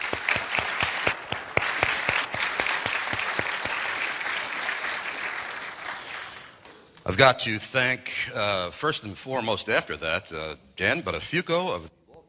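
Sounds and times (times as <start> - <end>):
audience applause: 0.0 - 6.6
speech: 7.1 - 12.0.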